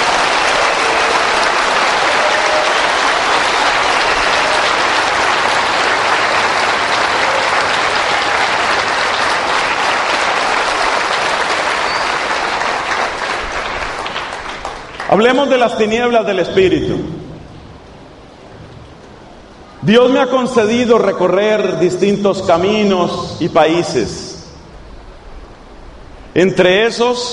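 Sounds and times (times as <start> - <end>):
loud applause from a large crowd: 0.0 - 15.8
speech: 15.1 - 17.2, 19.8 - 24.2, 26.3 - 27.3.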